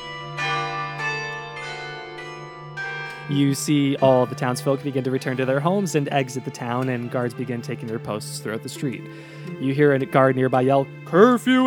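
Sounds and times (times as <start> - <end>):
clock bell striking nine: 0.0 - 6.0
speech: 3.3 - 11.6.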